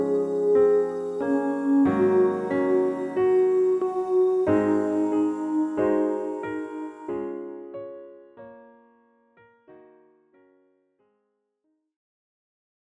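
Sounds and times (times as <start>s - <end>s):
low piano study in D flat: 0.0s - 8.8s.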